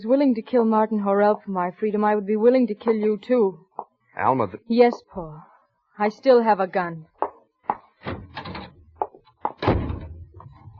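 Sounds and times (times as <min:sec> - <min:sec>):
speech: 0:00.0 - 0:07.2
door being shut and locked: 0:08.0 - 0:08.9, 0:09.5 - 0:10.7.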